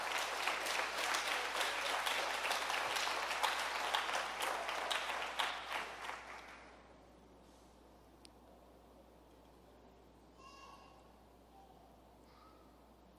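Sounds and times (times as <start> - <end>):
audience applauding loudly: 0.0 - 6.8.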